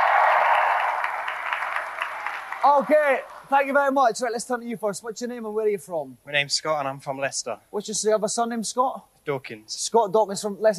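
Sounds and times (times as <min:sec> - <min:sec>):
audience applause: 0:00.0 - 0:03.8
speech: 0:02.6 - 0:10.7.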